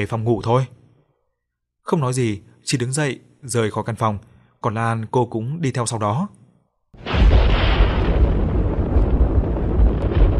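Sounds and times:
speech: 0:00.0 - 0:00.8, 0:01.9 - 0:07.4
loud thunderclap: 0:07.0 - 0:10.3.

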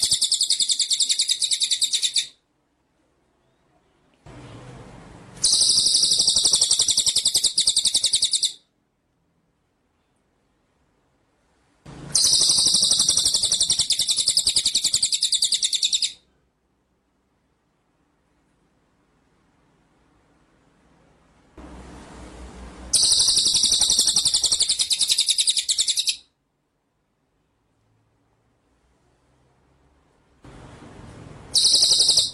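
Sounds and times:
low hiss: 0:00.0 - 0:32.3
white-rumped shama song trill: 0:05.4 - 0:08.6, 0:12.1 - 0:16.2, 0:22.9 - 0:26.3, 0:31.5 - 0:32.3.

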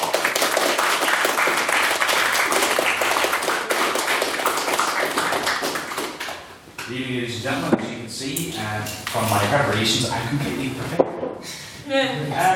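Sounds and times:
audience round of applause: 0:00.0 - 0:06.5
speech: 0:06.9 - 0:12.5.

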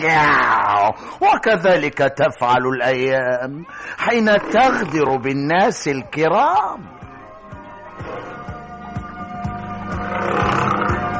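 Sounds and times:
speech: 0:00.0 - 0:07.0
leopard roaring in a zoo cage: 0:04.3 - 0:05.1, 0:10.0 - 0:11.1.

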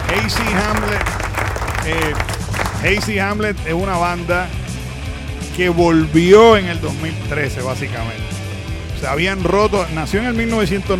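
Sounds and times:
applause for a rock band anniversary celebration: 0:00.0 - 0:03.3
speech: 0:00.3 - 0:04.6, 0:05.6 - 0:08.3, 0:09.0 - 0:10.9.

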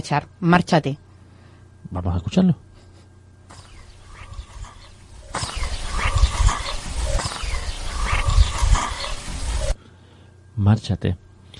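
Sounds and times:
speech: 0:00.0 - 0:01.0, 0:01.9 - 0:02.7, 0:10.6 - 0:11.5
hissing outdoor noise: 0:00.0 - 0:11.5
distant dogs barking: 0:03.5 - 0:09.8.

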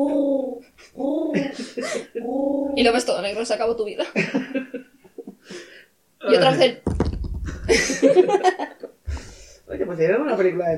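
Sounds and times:
person imitating pigeon cooing: 0:00.0 - 0:03.0
laughter: 0:01.3 - 0:02.1, 0:04.2 - 0:05.4, 0:07.5 - 0:09.0
speech: 0:02.2 - 0:04.6, 0:06.3 - 0:07.1, 0:10.0 - 0:10.7.

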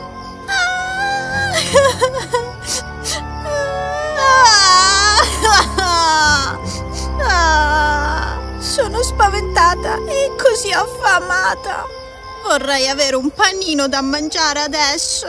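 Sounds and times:
girls whimpering: 0:00.5 - 0:08.9
two girls sobbing and wailing in an audiobook fairy tale: 0:00.5 - 0:11.8
speech: 0:09.1 - 0:15.2.

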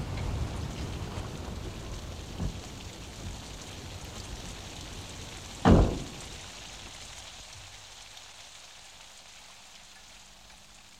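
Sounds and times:
steady rain: 0:00.0 - 0:10.9
soft thump: 0:05.6 - 0:06.2
loud bang: 0:05.7 - 0:06.3.

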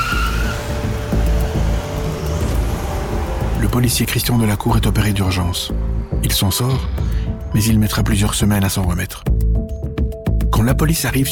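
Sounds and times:
getaway car speeding off: 0:00.0 - 0:08.2
tires of a getaway car squealing: 0:00.0 - 0:08.6
speech: 0:03.8 - 0:09.4, 0:10.6 - 0:11.2.

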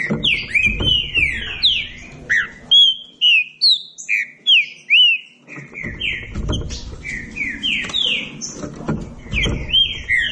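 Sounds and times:
Green-winged saltator song: 0:00.0 - 0:10.2.

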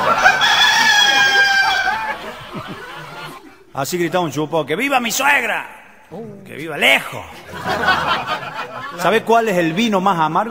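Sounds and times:
chicken crowing: 0:00.0 - 0:02.4
laughter: 0:00.0 - 0:04.5, 0:06.8 - 0:10.4
speech: 0:03.8 - 0:10.4.

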